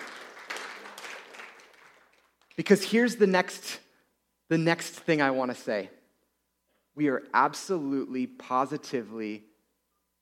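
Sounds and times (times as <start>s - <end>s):
audience clapping: 0.0s - 2.6s
speech: 2.6s - 3.8s, 4.5s - 6.0s, 7.0s - 9.5s.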